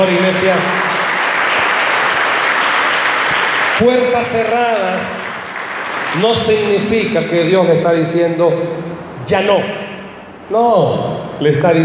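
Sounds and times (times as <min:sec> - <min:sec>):
speech: 0:00.0 - 0:00.9, 0:03.8 - 0:05.2, 0:06.1 - 0:09.8, 0:10.5 - 0:11.8
audience applause: 0:00.0 - 0:06.8.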